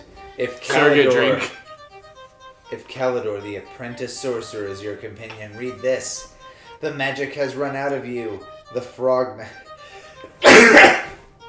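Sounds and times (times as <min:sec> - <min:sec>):
speech: 0:00.4 - 0:01.6, 0:02.7 - 0:09.7
sneeze: 0:10.4 - 0:11.2.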